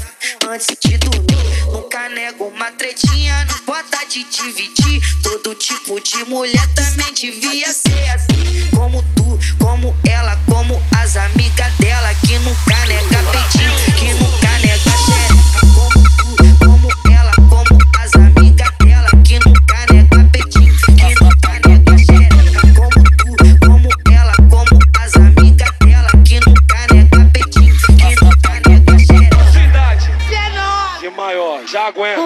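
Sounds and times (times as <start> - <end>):
mega bass: 0.9 - 1.8, 6.6 - 7.1, 7.9 - 31.0.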